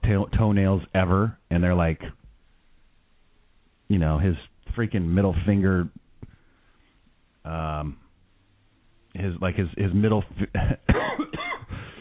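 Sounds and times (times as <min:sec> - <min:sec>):
speech: 0:00.1 - 0:02.2, 0:03.9 - 0:06.0, 0:07.4 - 0:08.0, 0:09.2 - 0:11.3
cough: 0:10.8 - 0:11.7.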